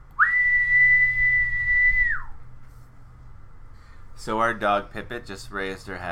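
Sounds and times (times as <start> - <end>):
faint low hum: 0.0 - 6.1
long sustained attention-getting whistle: 0.2 - 2.4
speech: 4.2 - 6.1.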